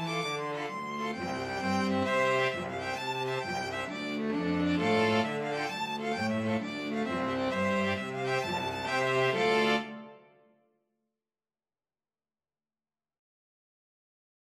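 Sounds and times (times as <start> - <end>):
string quartet: 0.0 - 10.2.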